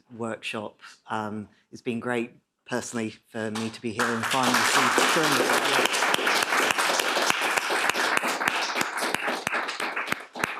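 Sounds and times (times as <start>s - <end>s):
speech: 0.1s - 6.0s
audience applause: 4.0s - 10.5s.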